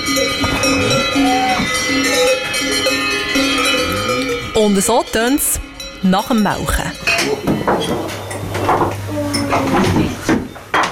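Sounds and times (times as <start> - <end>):
cowbells of cows waiting for milking clanking: 0.0 - 8.6
speech: 4.8 - 10.2.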